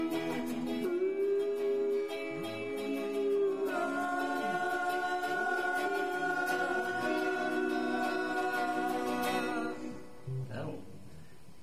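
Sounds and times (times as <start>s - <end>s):
harmony: 0.0s - 11.0s.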